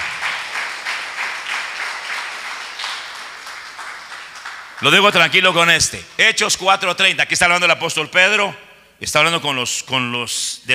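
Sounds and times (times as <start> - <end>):
audience applause: 0.0 - 5.4
speech: 4.8 - 10.7.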